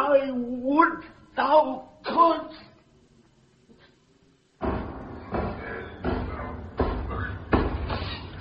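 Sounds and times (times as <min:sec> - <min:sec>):
speech: 0:01.0 - 0:02.7
knocking on a gate: 0:04.6 - 0:08.0.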